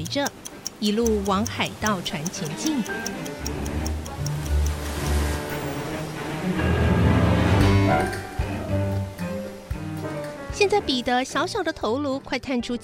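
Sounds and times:
speech: 0:00.0 - 0:03.8, 0:06.5 - 0:06.9, 0:07.9 - 0:08.8, 0:10.6 - 0:12.8
clock ticking: 0:00.0 - 0:05.0
sustained musical background: 0:00.0 - 0:12.8.

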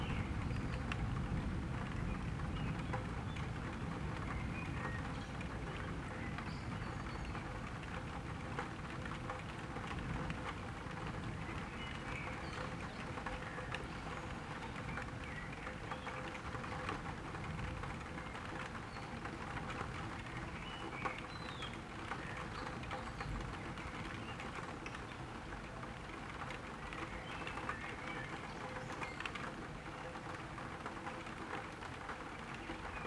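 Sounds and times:
night rain on a tilted window in July: 0:00.0 - 0:33.0.

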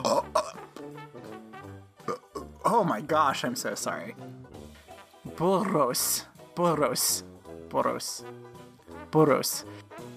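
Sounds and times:
burp: 0:00.0 - 0:00.8, 0:02.0 - 0:02.6
speech: 0:02.7 - 0:04.4, 0:05.4 - 0:08.5, 0:09.1 - 0:09.8.

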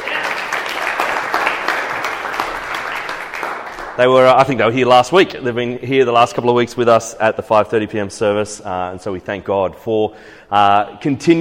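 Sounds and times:
audience applauding: 0:00.0 - 0:04.5
speech: 0:04.0 - 0:11.3.

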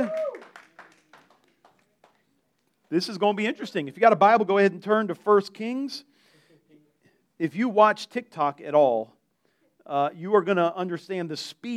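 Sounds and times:
speech: 0:00.0 - 0:00.2, 0:02.9 - 0:06.1, 0:07.4 - 0:09.2, 0:09.9 - 0:11.7
audience clapping: 0:00.0 - 0:03.0.

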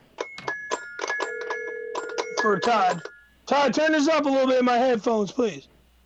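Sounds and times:
electronic phone dialing beeps: 0:00.2 - 0:03.3
speech: 0:02.4 - 0:05.7.

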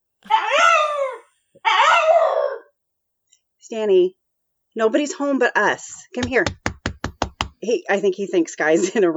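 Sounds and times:
dog whining and howling: 0:00.3 - 0:02.7
speech: 0:03.7 - 0:04.2, 0:04.8 - 0:06.6, 0:07.6 - 0:09.1.

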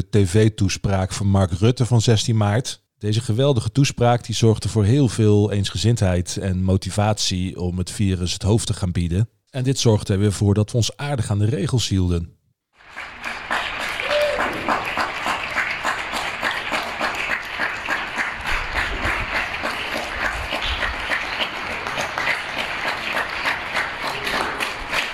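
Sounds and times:
speech: 0:00.0 - 0:12.4
long applause, people clapping: 0:12.8 - 0:25.1.

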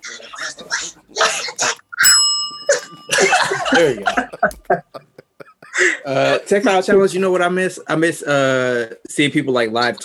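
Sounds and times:
bell being rung: 0:02.0 - 0:04.3
laughter: 0:02.7 - 0:07.0
speech: 0:03.7 - 0:04.8, 0:06.1 - 0:10.0.

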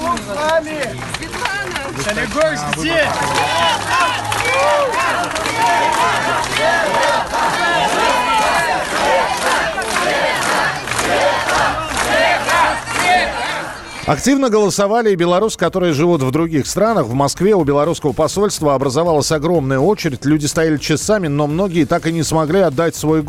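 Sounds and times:
large crowd of supporters giving an ovation: 0:00.0 - 0:14.3
speech: 0:02.0 - 0:08.2, 0:11.1 - 0:23.2.

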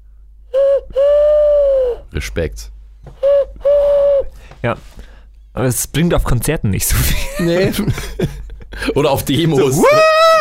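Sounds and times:
owl hoots imitated by whistling: 0:00.5 - 0:02.1, 0:03.1 - 0:04.5
speech: 0:02.2 - 0:03.2, 0:04.6 - 0:10.3.

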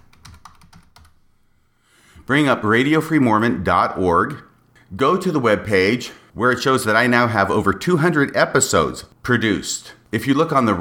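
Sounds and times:
typing on a computer keyboard: 0:00.0 - 0:01.2
speech: 0:02.3 - 0:10.8.

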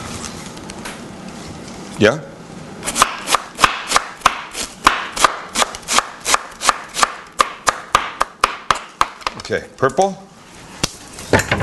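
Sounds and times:
speech: 0:02.0 - 0:02.3, 0:09.5 - 0:10.2
knife chopping purple cabbage for a slaw: 0:02.9 - 0:08.9.

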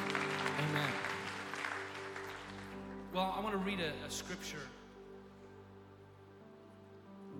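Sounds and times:
audience clapping hands: 0:00.0 - 0:03.6
speech: 0:03.2 - 0:04.8.

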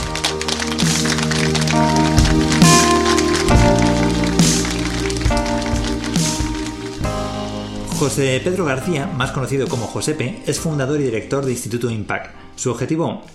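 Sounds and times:
audience applause: 0:00.0 - 0:08.3
sustained music: 0:00.0 - 0:13.3
speech: 0:08.0 - 0:13.3.

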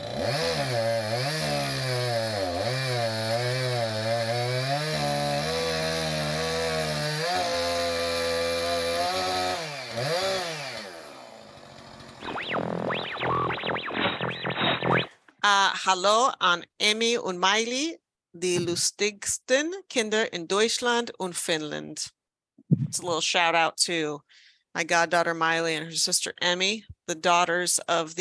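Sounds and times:
chainsaw engine starting and revving: 0:00.0 - 0:15.1
speech: 0:15.5 - 0:22.2, 0:22.9 - 0:28.1.

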